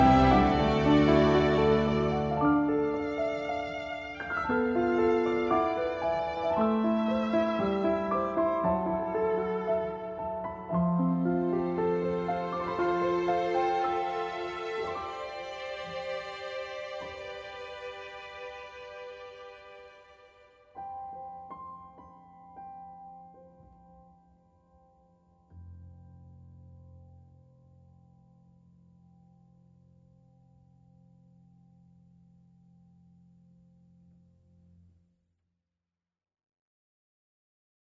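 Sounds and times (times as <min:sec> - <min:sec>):
field background music: 0:00.0 - 0:25.1.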